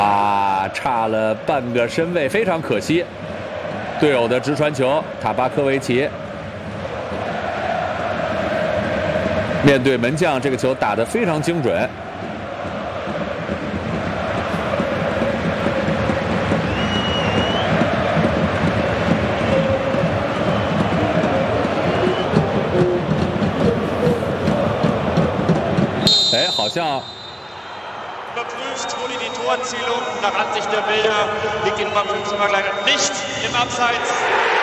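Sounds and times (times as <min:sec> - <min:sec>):
stadium crowd cheering: 0:00.0 - 0:34.6
speech: 0:00.7 - 0:03.2, 0:04.0 - 0:06.2, 0:09.6 - 0:12.1, 0:29.7 - 0:34.5
sustained horn or chant sounds: 0:26.0 - 0:34.2.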